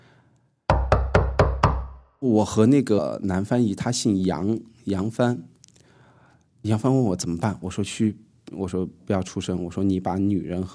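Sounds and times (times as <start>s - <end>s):
group of people knocking on a door: 0.7s - 2.1s
speech: 2.2s - 5.6s, 6.6s - 10.7s.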